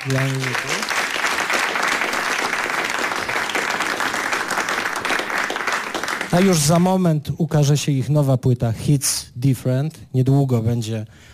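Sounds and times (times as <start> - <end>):
speech: 0.0 - 0.8, 6.3 - 11.3
audience applause: 0.0 - 6.9.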